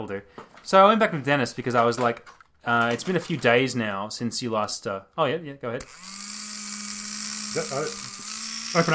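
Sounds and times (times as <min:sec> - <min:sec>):
speech: 0:00.0 - 0:06.3, 0:07.6 - 0:08.1, 0:08.7 - 0:08.9
Dremel rotary tool whirring: 0:05.8 - 0:08.9.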